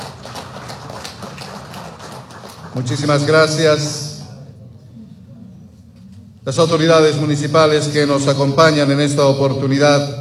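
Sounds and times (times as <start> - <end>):
crowd applauding: 0.0 - 3.4
speech: 2.8 - 4.0, 6.5 - 10.2.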